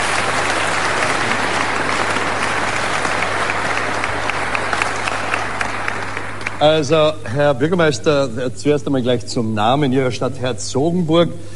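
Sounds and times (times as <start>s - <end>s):
audience applause: 0.0s - 7.2s
speech: 6.6s - 11.5s.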